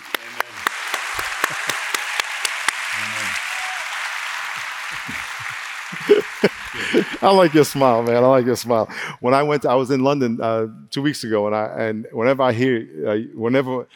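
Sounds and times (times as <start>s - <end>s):
audience applause: 0.0s - 9.0s
laughter: 1.1s - 1.9s, 4.6s - 9.1s
speech: 6.1s - 13.9s.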